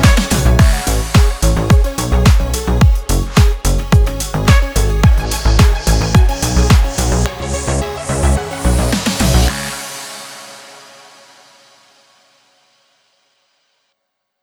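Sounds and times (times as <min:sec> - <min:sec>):
deep house music: 0:00.0 - 0:11.3.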